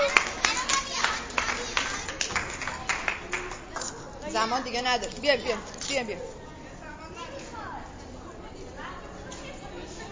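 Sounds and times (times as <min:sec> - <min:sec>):
small audience clapping: 0:00.0 - 0:03.9
speech: 0:04.4 - 0:06.4.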